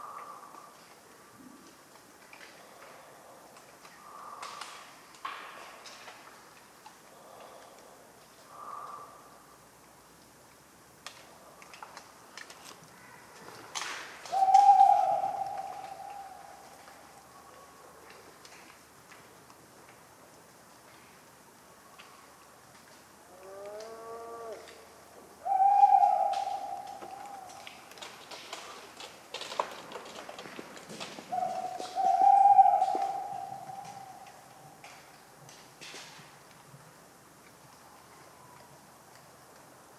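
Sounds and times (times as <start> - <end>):
tawny owl hooting: 14.3 - 17.1, 25.4 - 27.9, 31.3 - 34.8.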